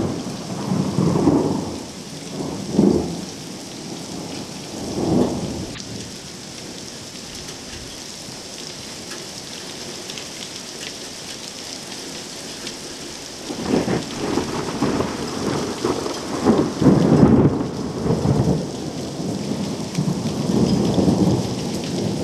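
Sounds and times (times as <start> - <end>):
thunderstorm: 0.0 - 6.2, 13.4 - 22.2.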